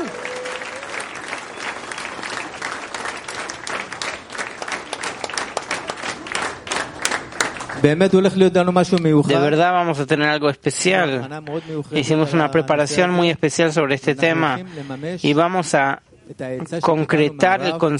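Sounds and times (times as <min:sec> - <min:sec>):
audience applause: 0:00.0 - 0:07.9
speech: 0:07.8 - 0:17.9.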